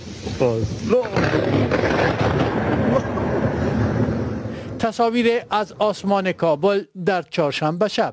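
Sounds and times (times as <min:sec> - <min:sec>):
speech: 0:00.4 - 0:02.4, 0:04.8 - 0:08.1
thunder from a lightning strike in Herat: 0:00.8 - 0:05.0.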